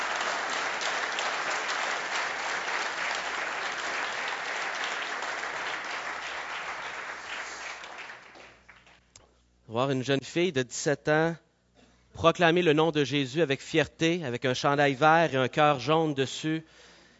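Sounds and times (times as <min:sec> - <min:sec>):
large crowd applauding: 0:00.0 - 0:09.0
speech: 0:09.7 - 0:11.4, 0:12.2 - 0:16.9.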